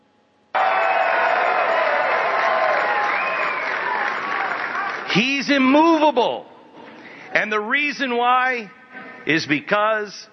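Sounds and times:
audience cheering and applauding: 0:00.6 - 0:05.4
speech: 0:05.2 - 0:06.5, 0:07.4 - 0:10.3.

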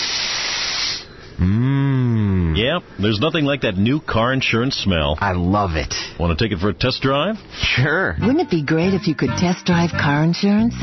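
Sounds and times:
long loud hissing inhale through the nose: 0:00.0 - 0:01.4
voiced satisfied-sounding sigh: 0:01.3 - 0:02.6
speech: 0:01.4 - 0:01.6, 0:02.6 - 0:10.8.

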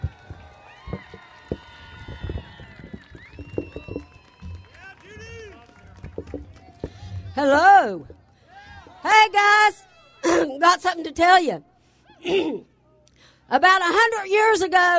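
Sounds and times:
audience applause: 0:00.0 - 0:06.9
speech: 0:07.4 - 0:08.2, 0:09.0 - 0:12.7, 0:13.5 - 0:14.9.

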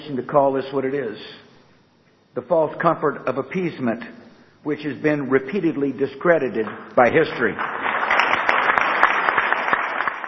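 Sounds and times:
speech: 0:00.1 - 0:01.4, 0:02.4 - 0:07.9
applause: 0:07.3 - 0:10.2.

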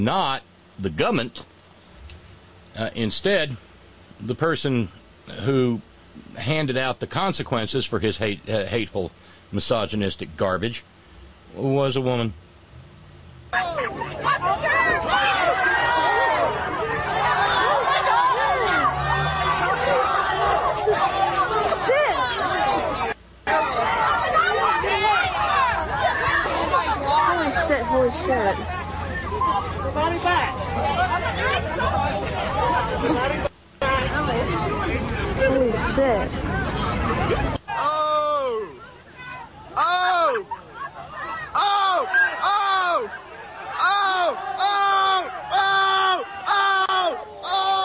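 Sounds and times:
speech: 0:00.0 - 0:01.5, 0:02.8 - 0:10.9, 0:11.5 - 0:12.4
large crowd yelling a drawn-out oh: 0:13.5 - 0:35.6, 0:36.4 - 0:47.8
scattered shouts: 0:13.5 - 0:47.8.

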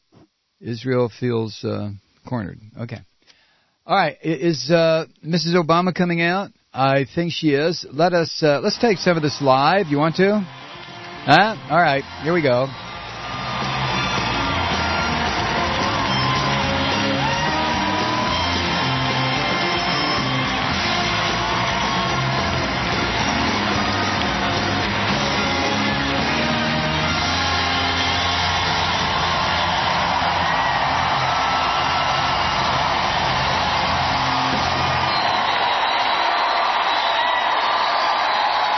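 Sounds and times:
speech: 0:00.6 - 0:03.1, 0:03.9 - 0:10.6, 0:11.2 - 0:12.8
crowd applause and cheering at rally: 0:08.6 - 0:38.7.

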